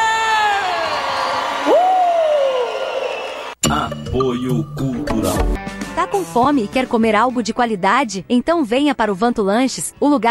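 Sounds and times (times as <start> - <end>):
crowd whooping: 0.0 - 3.6
speech: 4.2 - 10.2.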